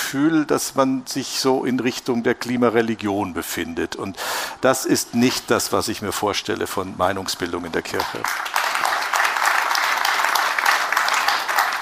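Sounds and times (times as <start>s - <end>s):
speech: 0.1s - 8.7s
audience applause: 8.0s - 11.8s.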